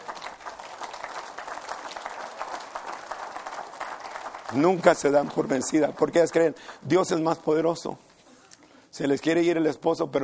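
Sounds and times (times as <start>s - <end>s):
audience applause: 0.0s - 7.7s
speech: 4.5s - 8.1s, 9.0s - 10.2s.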